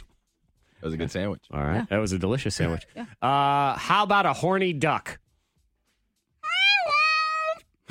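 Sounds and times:
speech: 0.9s - 5.2s
person's voice imitating an excited raccoon finding food: 6.4s - 7.8s.

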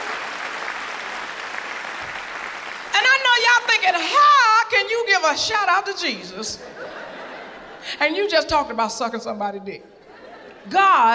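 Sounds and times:
audience applause: 0.0s - 3.0s
speech: 3.7s - 6.9s, 7.8s - 9.9s, 10.6s - 11.1s
laughter: 6.4s - 8.0s, 10.0s - 11.0s.

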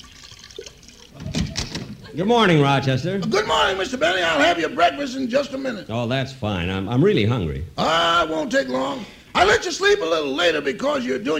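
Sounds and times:
cognac being poured into a dish: 0.0s - 1.4s
speech: 2.2s - 11.3s.

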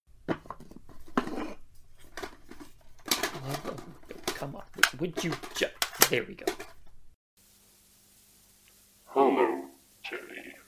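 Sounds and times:
rummaging through a sticky box of cassette tapes, plastic clacks and rustles: 0.2s - 7.0s
speech: 4.4s - 6.7s.

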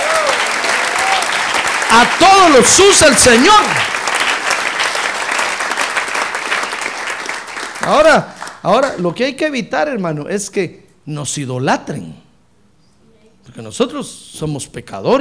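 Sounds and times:
audience applause: 0.0s - 9.0s
speech: 2.0s - 4.0s, 7.9s - 12.2s, 13.5s - 15.1s.

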